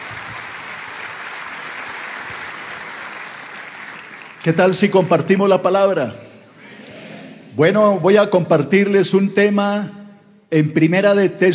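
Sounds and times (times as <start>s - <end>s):
welcoming applause from audience: 0.0s - 4.7s
speech: 4.4s - 6.2s, 7.6s - 11.5s.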